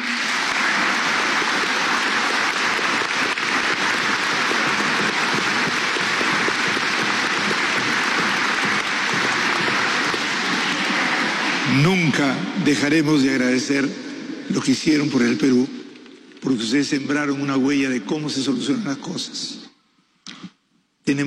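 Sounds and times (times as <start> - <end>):
large crowd applause: 0.0 - 12.2
speech: 12.2 - 15.8, 16.4 - 19.6, 21.1 - 21.2.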